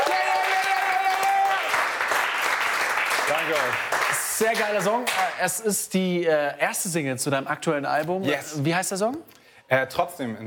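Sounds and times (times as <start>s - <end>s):
person whooping: 0.0s - 1.7s
small group clapping: 0.0s - 5.4s
speech: 3.3s - 10.4s.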